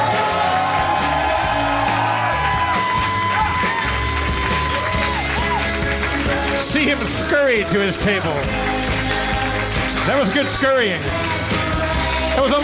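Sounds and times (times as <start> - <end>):
audience whooping: 0.0 - 6.0
audience applause: 0.0 - 12.6
speech: 6.8 - 8.9, 10.1 - 11.6, 12.4 - 12.6.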